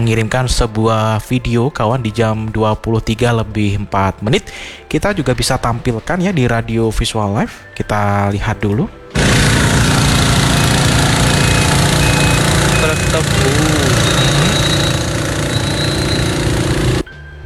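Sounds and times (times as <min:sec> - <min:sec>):
speech: 0:00.0 - 0:09.4
sugarcane truck engine running: 0:09.2 - 0:17.1.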